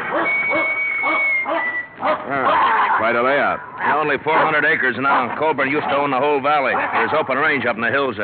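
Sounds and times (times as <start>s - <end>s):
dog Duke barking at a cattle ranch: 0.1s - 3.1s, 4.3s - 6.0s, 6.6s - 7.3s
speech: 3.0s - 8.2s.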